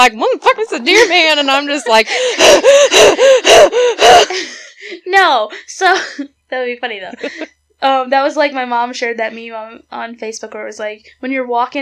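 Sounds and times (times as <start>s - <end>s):
speech: 0.0s - 11.8s
person huffing and puffing heavily: 2.0s - 4.7s.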